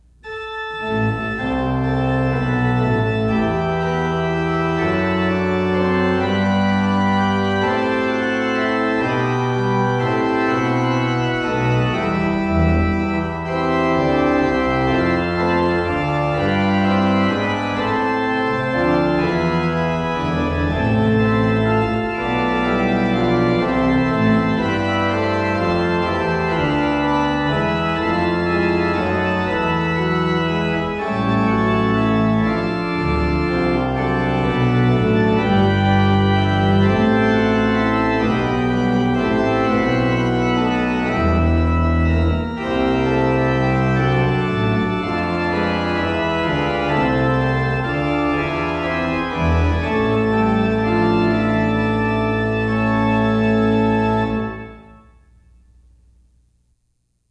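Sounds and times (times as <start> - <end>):
organ piece: 0.0 - 56.2.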